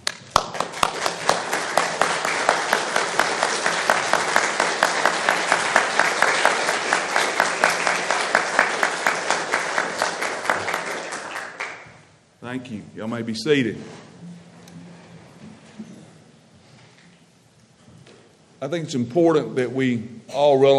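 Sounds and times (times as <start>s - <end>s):
audience applause filling a big room: 0.0s - 12.1s
speech: 12.7s - 14.0s, 18.6s - 20.7s.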